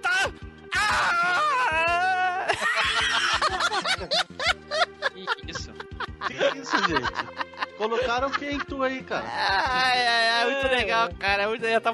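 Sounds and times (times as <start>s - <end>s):
man screaming: 0.0s - 3.6s
laughter: 2.3s - 9.6s
speech: 6.6s - 11.9s.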